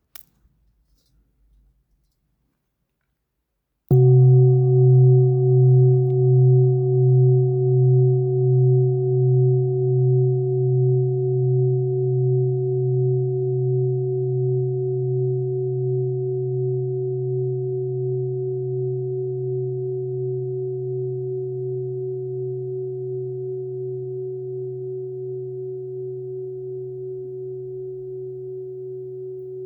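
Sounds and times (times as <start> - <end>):
large singing bowl struck and ringing: 3.9 - 29.6.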